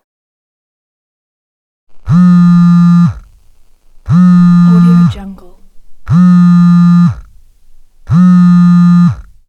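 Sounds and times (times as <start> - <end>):
burning detonator fuse wick: 1.9 - 9.4.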